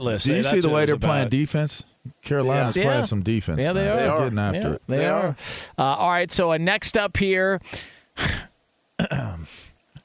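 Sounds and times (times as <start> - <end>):
speech: 0.0 - 8.4
person clearing throat: 8.2 - 9.5.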